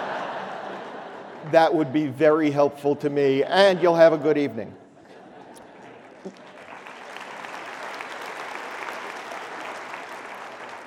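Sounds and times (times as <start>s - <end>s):
laughter: 0.0s - 2.6s, 4.9s - 6.6s
speech: 1.4s - 4.8s
audience applause in a theater: 5.8s - 10.8s.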